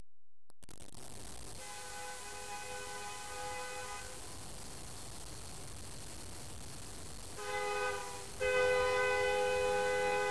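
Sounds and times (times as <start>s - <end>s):
train: 1.6s - 4.8s, 7.3s - 10.2s.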